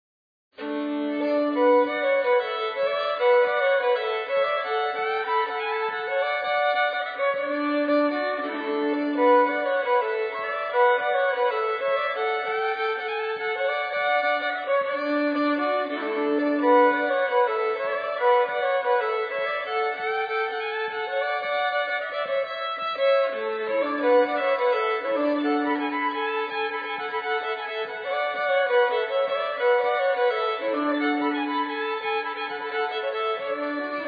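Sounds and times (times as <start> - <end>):
fiddle: 0.6 - 34.0.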